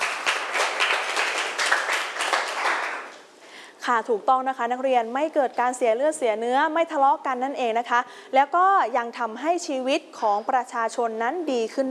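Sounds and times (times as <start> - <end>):
students clapping for a classmate: 0.0 - 3.3
speech: 3.9 - 11.8.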